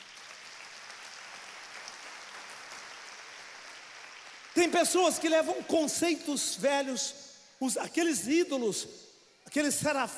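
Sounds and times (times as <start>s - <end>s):
audience applause: 0.0s - 4.8s
speech: 4.6s - 10.1s.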